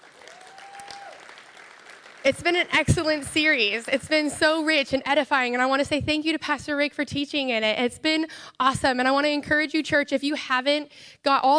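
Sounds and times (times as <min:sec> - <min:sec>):
audience applause: 0:00.0 - 0:04.2
speech: 0:02.2 - 0:11.5.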